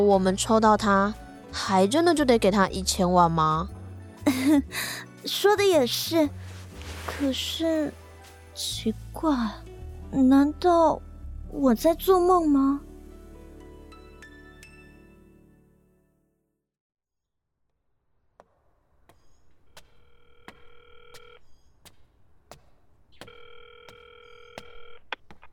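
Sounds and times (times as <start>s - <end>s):
speech: 0.0s - 6.5s, 7.1s - 8.0s, 8.6s - 12.9s
telephone dialing tone beeps: 23.2s - 25.1s.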